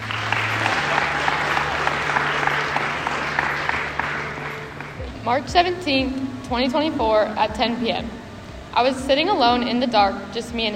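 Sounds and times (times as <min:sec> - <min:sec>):
audience applause welcoming a speaker: 0:00.0 - 0:05.0
speech: 0:05.3 - 0:08.2, 0:08.8 - 0:10.7.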